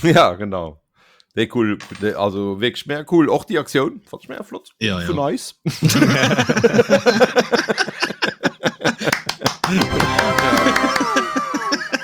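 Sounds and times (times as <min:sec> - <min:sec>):
speech: 0:00.0 - 0:08.0
laughter: 0:05.7 - 0:12.0
hand clapping: 0:09.0 - 0:11.4.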